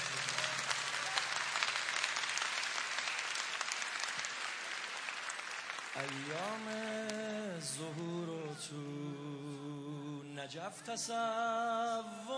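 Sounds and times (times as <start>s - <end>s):
audience at a religious gathering clapping: 0.0s - 8.7s
speech: 6.0s - 9.4s, 10.4s - 12.3s.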